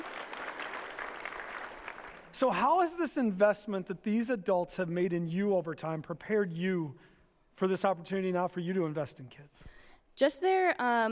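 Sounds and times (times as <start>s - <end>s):
audience applause: 0.0s - 2.8s
speech: 2.4s - 11.1s.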